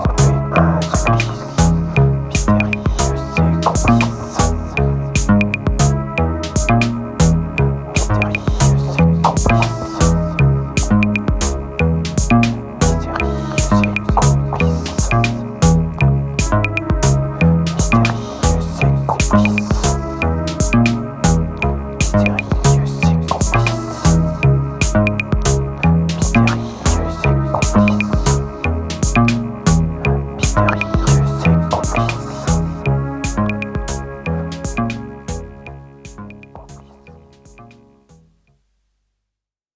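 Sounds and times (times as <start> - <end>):
French synthwave music: 0.0 - 38.2.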